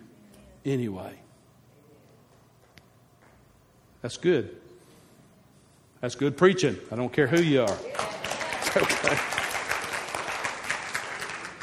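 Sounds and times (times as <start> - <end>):
speech: 0.6 - 1.3, 4.0 - 4.6, 6.0 - 8.1, 8.7 - 9.4
audience applause during a church sermon: 7.7 - 11.6.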